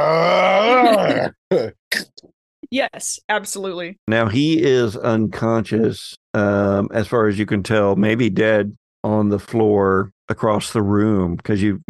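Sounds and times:
person imitating a roar: 0:00.0 - 0:01.7
speech: 0:02.7 - 0:11.8.

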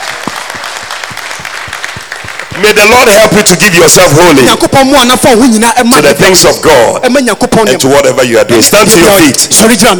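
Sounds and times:
church congregation clapping rhythmically during a sermon: 0:00.0 - 0:04.7
speech: 0:02.6 - 0:09.9.

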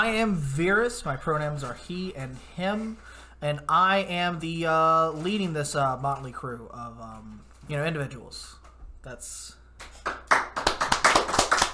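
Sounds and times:
speech: 0:00.0 - 0:10.3
applause, hands clapping: 0:09.8 - 0:11.7.

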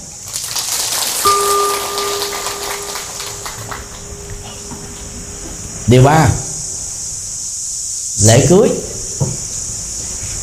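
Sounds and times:
loud round of applause: 0:00.2 - 0:04.3
speech: 0:05.9 - 0:06.4, 0:08.2 - 0:09.4.

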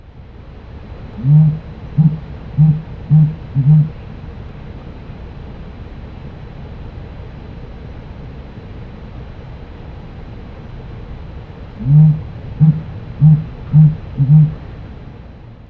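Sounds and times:
dusky grouse low hooting courtship call: 0:01.2 - 0:04.2, 0:11.8 - 0:14.8.

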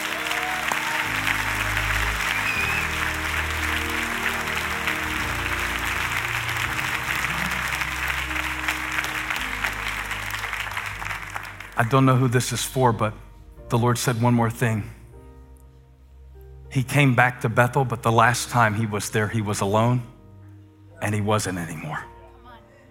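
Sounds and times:
audience hand clapping in praise: 0:00.0 - 0:12.4
speech: 0:11.8 - 0:15.0, 0:16.7 - 0:20.1, 0:21.0 - 0:22.1.

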